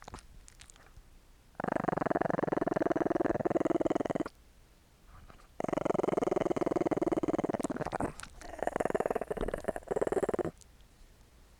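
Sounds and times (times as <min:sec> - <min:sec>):
dog growling: 0:01.6 - 0:04.3, 0:05.6 - 0:10.6.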